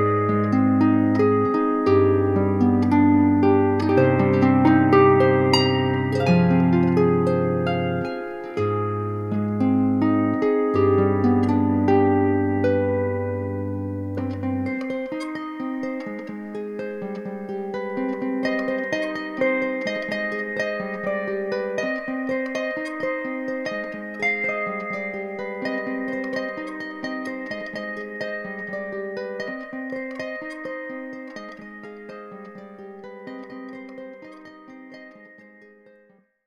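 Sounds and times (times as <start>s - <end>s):
electric harp: 0.0s - 36.2s.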